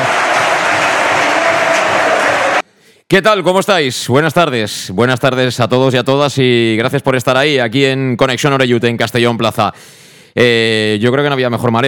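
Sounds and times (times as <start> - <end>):
applause: 0.0 - 2.6
speech: 3.1 - 11.8.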